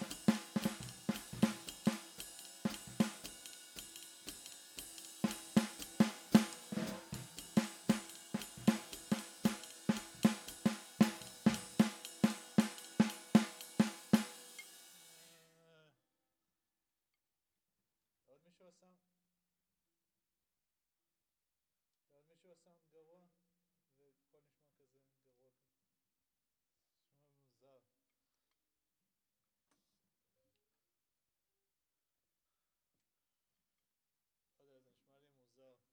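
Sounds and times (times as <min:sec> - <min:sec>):
snare drum: 0:00.0 - 0:15.3.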